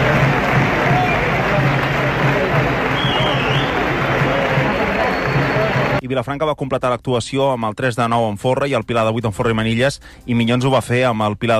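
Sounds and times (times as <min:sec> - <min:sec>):
audience applause: 0:00.0 - 0:06.0
speech: 0:06.1 - 0:11.5.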